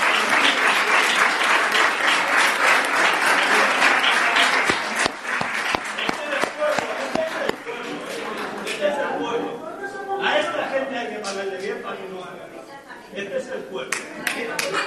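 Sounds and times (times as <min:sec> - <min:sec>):
crowd applauding at a protest: 0:00.0 - 0:08.9
murmur of voices: 0:00.0 - 0:14.8.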